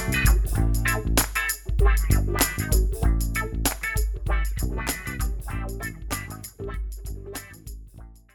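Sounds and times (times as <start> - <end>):
wah wah mix: 0.0 - 6.5.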